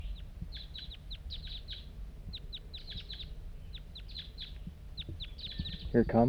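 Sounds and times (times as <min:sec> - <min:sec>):
lone wild bird chirping: 0:00.0 - 0:06.2
speech: 0:05.9 - 0:06.2.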